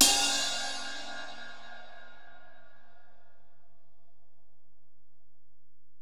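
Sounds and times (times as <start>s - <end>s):
Alesis DM-PRO drum machine ride cymbal: 0.0s - 2.7s.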